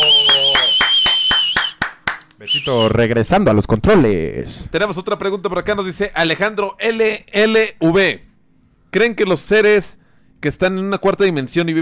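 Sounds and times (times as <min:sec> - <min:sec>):
clapping: 0:00.0 - 0:02.3
speech: 0:02.6 - 0:08.3, 0:08.9 - 0:11.8.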